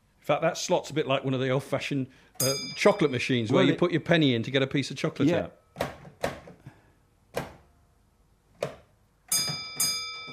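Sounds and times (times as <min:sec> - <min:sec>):
speech: 0:00.3 - 0:05.9
railway signal bell rung by signalman: 0:02.4 - 0:03.3, 0:09.3 - 0:10.3.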